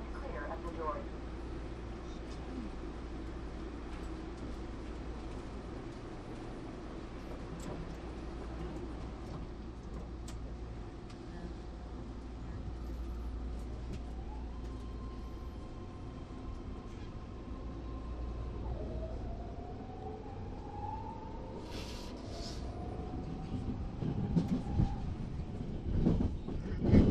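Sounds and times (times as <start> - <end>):
train riding: 0.0 - 27.0.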